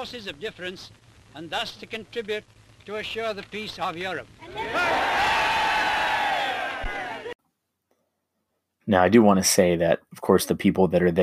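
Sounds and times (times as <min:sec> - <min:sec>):
speech: 0:00.0 - 0:05.1, 0:08.9 - 0:11.2
large crowd cheering: 0:04.4 - 0:07.4.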